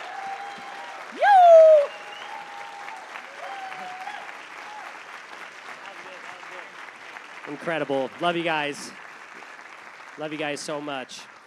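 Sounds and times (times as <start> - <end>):
person in a church congregation whooping: 0.0 - 4.8
church congregation clapping to honor its pastors: 0.0 - 11.4
speech: 7.5 - 9.0, 10.2 - 11.3.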